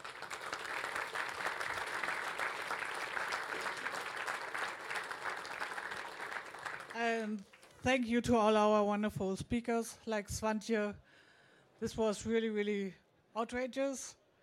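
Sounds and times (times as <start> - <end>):
audience applause: 0.0 - 7.0
speech: 7.0 - 11.0, 11.8 - 14.2.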